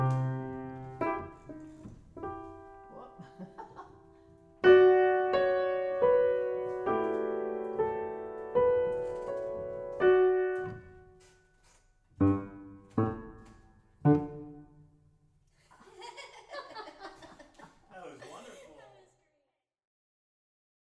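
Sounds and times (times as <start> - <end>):
piano playing: 0.0 - 11.4, 12.1 - 15.1
laughter: 3.2 - 4.0, 15.6 - 19.3.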